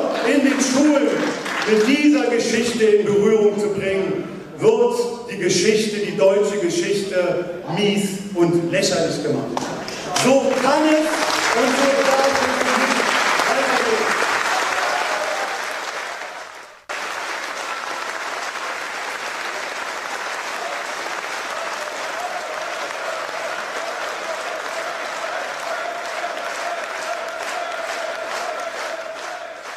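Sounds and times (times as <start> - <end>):
crowd applauding: 0.0 - 2.4, 9.6 - 29.7
speech: 0.8 - 12.5.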